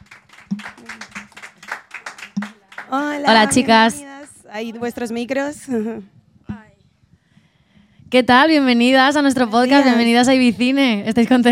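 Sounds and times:
applause: 0:00.0 - 0:04.4
speech: 0:02.9 - 0:06.2, 0:08.1 - 0:11.4.

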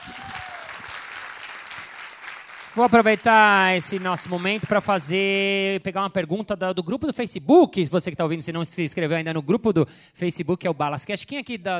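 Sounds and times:
audience applause: 0:00.0 - 0:05.2
speech: 0:02.8 - 0:11.7.

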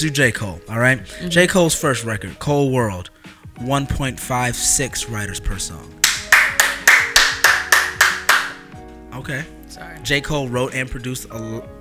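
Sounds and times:
speech: 0:00.0 - 0:06.0, 0:09.2 - 0:11.7
hands clapping: 0:06.0 - 0:08.8.

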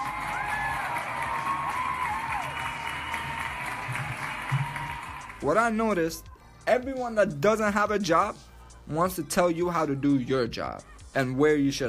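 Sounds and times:
crowd clapping: 0:00.0 - 0:05.5
speech: 0:05.4 - 0:11.8.

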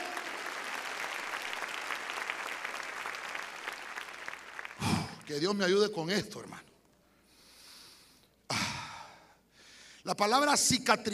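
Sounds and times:
church audience clapping loudly: 0:00.0 - 0:05.8
speech: 0:05.3 - 0:06.6, 0:10.1 - 0:11.1.

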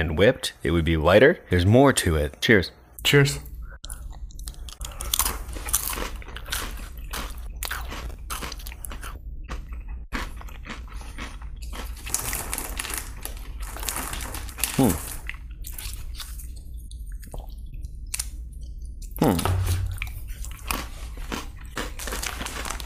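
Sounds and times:
speech: 0:00.0 - 0:03.5
chips being bitten and chewed: 0:04.4 - 0:16.6, 0:19.2 - 0:22.8.

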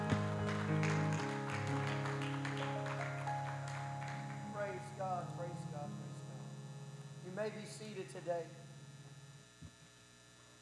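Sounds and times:
audience clapping hands: 0:00.0 - 0:05.2
sustained keyboard chords: 0:00.0 - 0:09.5
speech: 0:07.4 - 0:08.6.

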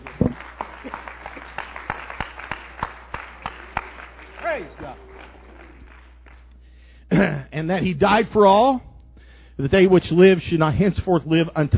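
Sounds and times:
audience clapping hands: 0:00.0 - 0:06.6
speech: 0:04.6 - 0:05.0, 0:07.2 - 0:08.9, 0:09.6 - 0:11.7.

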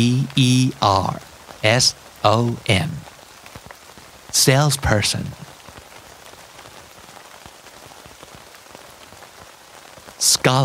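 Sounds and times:
speech: 0:00.0 - 0:03.1, 0:04.3 - 0:05.4, 0:10.2 - 0:10.6
rain pattering on a hard surface: 0:00.0 - 0:10.6.

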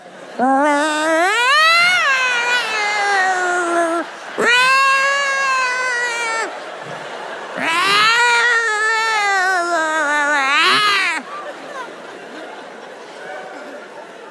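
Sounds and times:
laughter: 0:00.0 - 0:14.2
cats yowling while mating: 0:00.4 - 0:06.6, 0:07.5 - 0:11.2.

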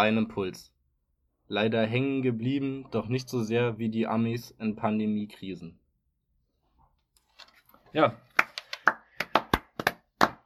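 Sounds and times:
speech: 0:00.0 - 0:00.8, 0:01.5 - 0:05.8, 0:07.4 - 0:08.2
hand clapping: 0:08.3 - 0:10.4.

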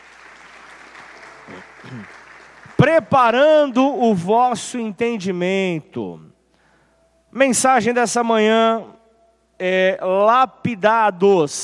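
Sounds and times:
audience applause: 0:00.0 - 0:03.0
speech: 0:01.5 - 0:02.2, 0:02.8 - 0:06.3, 0:07.3 - 0:09.0, 0:09.6 - 0:11.6.

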